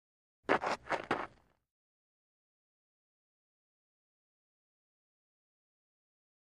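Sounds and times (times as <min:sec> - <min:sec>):
baseball cleats footsteps: 0:00.5 - 0:01.4.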